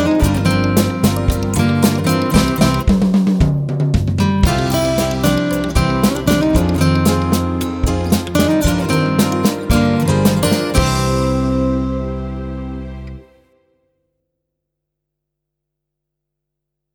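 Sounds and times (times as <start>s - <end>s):
rock music: 0.0s - 3.4s, 4.1s - 13.2s.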